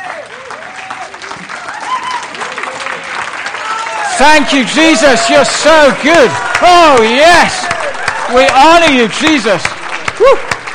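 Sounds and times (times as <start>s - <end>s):
cheers and whoops: 0.0s - 9.0s, 10.1s - 10.6s
large indoor crowd applauding: 0.0s - 10.7s
speech: 4.2s - 7.7s, 8.3s - 10.5s.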